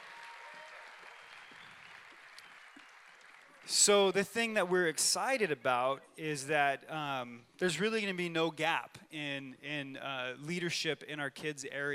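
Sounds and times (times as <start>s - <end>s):
audience clapping: 0.0s - 4.7s
speech: 3.7s - 11.9s.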